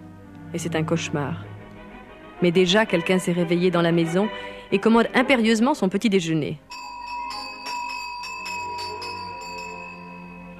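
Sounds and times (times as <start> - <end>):
speech: 0.5 - 1.5, 2.4 - 6.9
small hand bells furiously shaken: 6.7 - 10.5.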